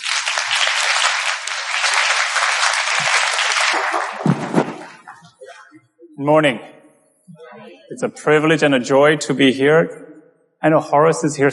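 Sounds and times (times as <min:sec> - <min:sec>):
congregation applauding to welcome a pastor: 0:00.0 - 0:05.4
speech: 0:06.2 - 0:06.7, 0:07.9 - 0:10.0, 0:10.6 - 0:11.5.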